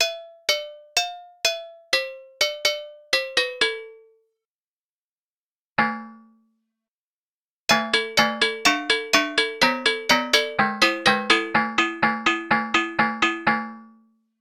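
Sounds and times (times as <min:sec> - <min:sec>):
agogo bells: 0:00.0 - 0:04.1, 0:07.7 - 0:13.9.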